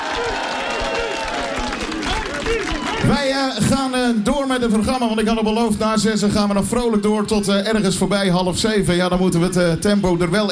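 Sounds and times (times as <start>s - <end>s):
audience applause: 0.0s - 4.8s
crowd cheering: 0.0s - 5.6s
speech: 3.1s - 10.4s.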